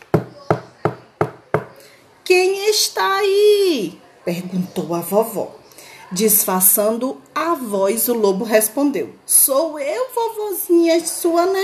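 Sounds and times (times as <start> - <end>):
knocking on a wooden door: 0.1 - 1.7
speech: 2.3 - 11.6.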